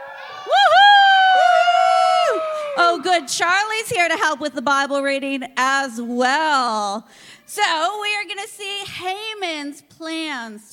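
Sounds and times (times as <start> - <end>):
audience cheering: 0.0 - 3.4
speech: 3.0 - 10.7.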